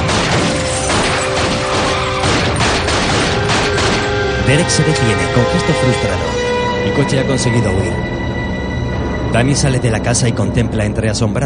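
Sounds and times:
repeated gunshots: 0.0s - 4.3s
speech: 4.5s - 8.2s, 9.3s - 11.4s.

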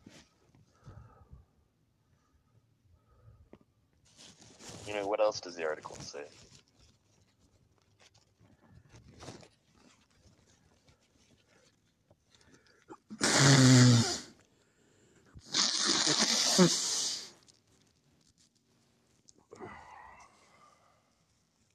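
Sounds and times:
speech: 4.9s - 6.6s
nose blowing: 13.1s - 14.4s, 15.4s - 17.4s.

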